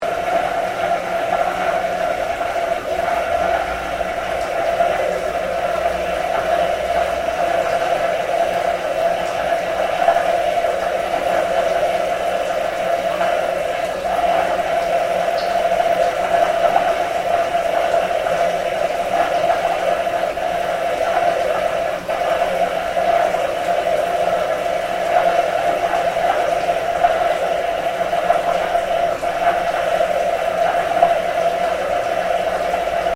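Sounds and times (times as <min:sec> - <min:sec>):
industrial drainage pump running underground: 0:00.0 - 0:33.1.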